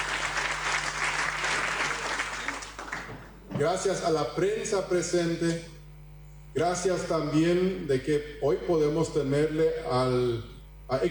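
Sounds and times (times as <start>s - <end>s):
audience applause: 0.0s - 3.4s
speech: 3.6s - 5.8s, 6.6s - 11.0s.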